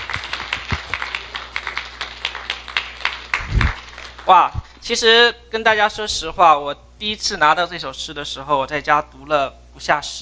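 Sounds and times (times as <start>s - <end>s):
audience applause: 0.0s - 4.5s
speech: 4.3s - 10.1s.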